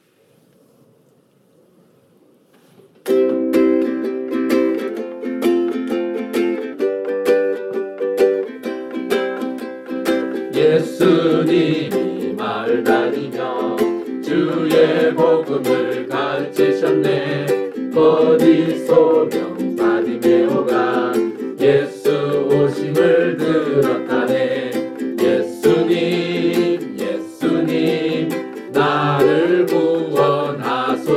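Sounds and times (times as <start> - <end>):
Korean song: 3.1 - 31.1.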